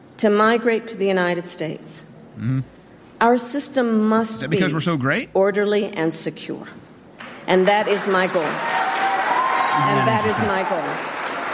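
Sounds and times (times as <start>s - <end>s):
speech: 0.2s - 6.8s, 7.5s - 8.8s, 9.8s - 11.1s
laughter: 4.4s - 5.2s, 9.8s - 10.6s
audience cheering: 8.4s - 11.5s.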